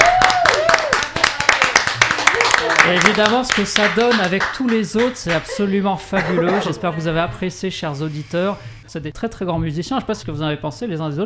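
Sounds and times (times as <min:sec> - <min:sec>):
audience clapping for musicians: 0:00.0 - 0:05.8
speech: 0:02.9 - 0:11.2
laughter: 0:05.0 - 0:07.5.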